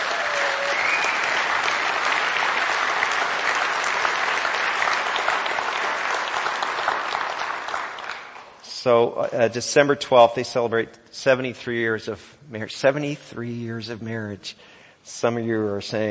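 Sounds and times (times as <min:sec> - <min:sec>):
brief rising whistle-like tone: 0:00.0 - 0:01.5
crowd applauding: 0:00.0 - 0:08.6
speech: 0:08.8 - 0:16.0.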